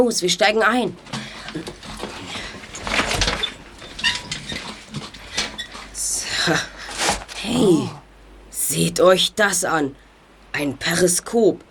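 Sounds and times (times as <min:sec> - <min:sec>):
speech: 0:00.0 - 0:02.0, 0:06.5 - 0:06.8, 0:07.4 - 0:08.0, 0:08.7 - 0:10.0, 0:10.6 - 0:11.6
hatch being opened in an audio drama: 0:01.1 - 0:06.1.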